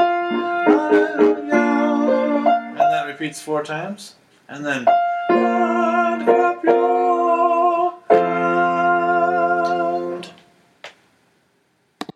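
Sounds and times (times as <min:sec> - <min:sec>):
tenor voice singing: 0:00.0 - 0:03.1, 0:05.3 - 0:10.4.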